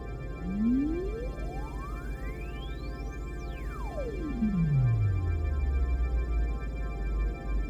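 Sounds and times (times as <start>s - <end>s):
robotic string stream: 0.2s - 7.6s.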